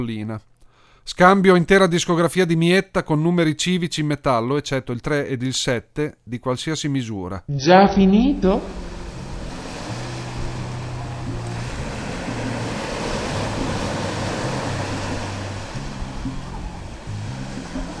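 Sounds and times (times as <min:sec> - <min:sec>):
speech: 0:00.0 - 0:08.9
low tonal hum: 0:07.9 - 0:17.9
sea waves at Santa Margherita on the Gulf of Policastro: 0:08.3 - 0:17.9.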